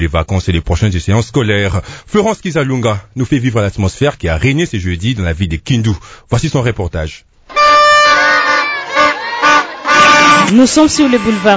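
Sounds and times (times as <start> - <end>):
speech: 0.0 - 7.3, 10.2 - 11.5
families celebrating with cries on the street: 7.5 - 11.5.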